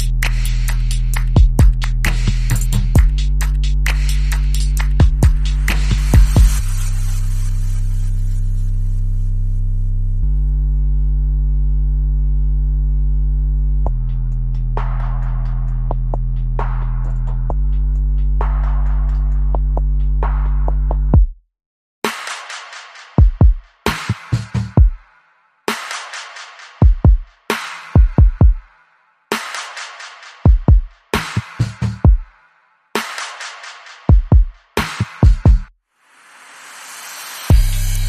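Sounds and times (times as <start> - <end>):
chill break drums: 0.0 - 6.9, 14.8 - 21.3, 22.0 - 25.1, 25.7 - 28.7, 29.3 - 32.3, 33.0 - 35.7, 36.6 - 38.0
bass: 0.0 - 21.3, 37.5 - 38.0.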